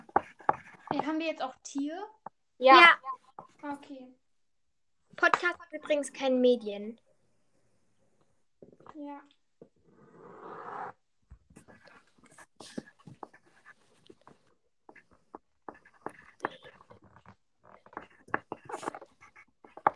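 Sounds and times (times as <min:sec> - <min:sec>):
pen scratching words onto paper during a word game: 0:00.0 - 0:01.3, 0:09.9 - 0:19.9
speech: 0:00.9 - 0:04.2, 0:05.2 - 0:07.0, 0:08.9 - 0:09.4.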